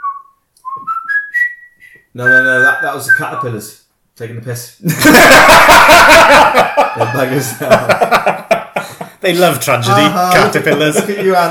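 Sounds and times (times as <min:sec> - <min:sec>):
person whistling: 0:00.0 - 0:03.5
speech: 0:02.1 - 0:08.4, 0:09.2 - 0:11.4
laughter: 0:04.8 - 0:11.4.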